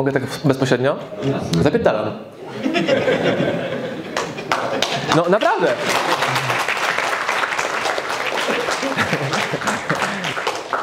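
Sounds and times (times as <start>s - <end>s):
speech: 0.0s - 3.7s, 5.0s - 6.2s
laughter: 2.4s - 6.8s, 8.1s - 10.8s
audience applause: 4.2s - 10.8s.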